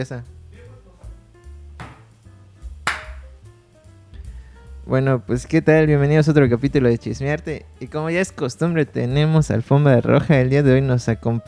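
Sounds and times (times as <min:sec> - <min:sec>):
speech: 0:00.0 - 0:00.4, 0:04.9 - 0:11.4
hand clap: 0:01.8 - 0:03.3.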